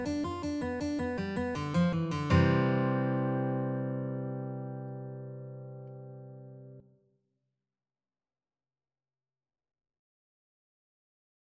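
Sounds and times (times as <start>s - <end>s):
guitar prelude: 0.0s - 6.8s.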